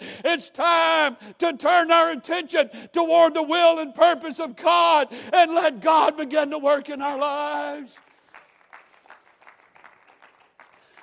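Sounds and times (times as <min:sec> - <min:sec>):
speech: 0:00.4 - 0:08.1
light scattered applause from a small crowd: 0:08.0 - 0:11.0.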